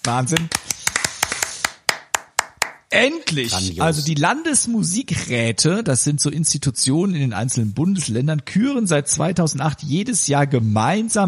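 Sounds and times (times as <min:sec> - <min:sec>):
speech: 0:00.0 - 0:00.7, 0:02.9 - 0:11.2
applause, clapping hands: 0:00.0 - 0:03.6.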